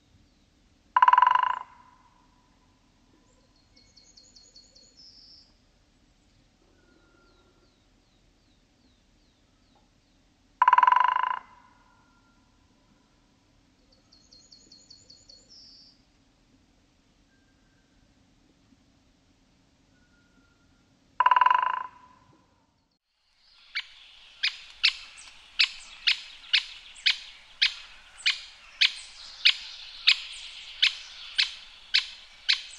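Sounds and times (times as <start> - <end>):
white-backed woodpecker short fast drumming: 1.0 - 1.8, 10.6 - 11.5, 21.2 - 22.0, 23.3 - 32.7
white-backed woodpecker gyk call: 1.0 - 2.1, 10.6 - 12.4, 21.2 - 22.3, 23.4 - 32.7.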